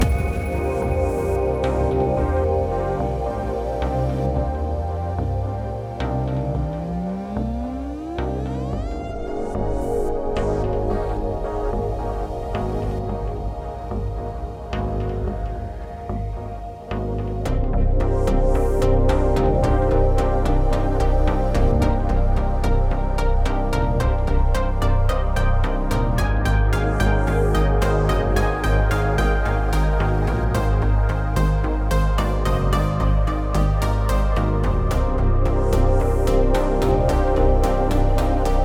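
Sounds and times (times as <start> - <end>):
music loop: 0.0 - 38.6.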